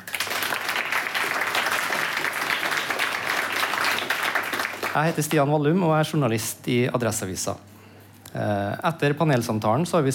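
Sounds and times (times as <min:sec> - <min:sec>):
audience applause: 0:00.0 - 0:05.3
speech: 0:05.0 - 0:07.7, 0:08.4 - 0:10.1.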